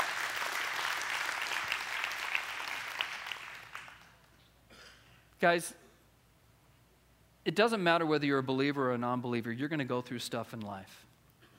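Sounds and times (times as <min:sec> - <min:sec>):
audience applause: 0:00.0 - 0:04.2
speech: 0:05.4 - 0:05.8, 0:07.4 - 0:11.1.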